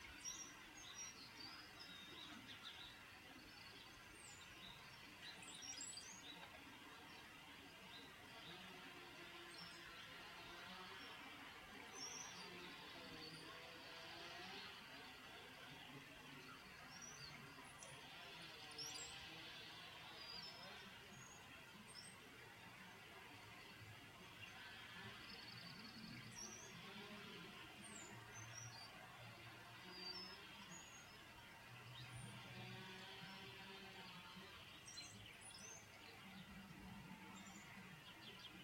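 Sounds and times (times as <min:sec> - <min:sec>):
birds chirping: 0:00.0 - 0:38.6.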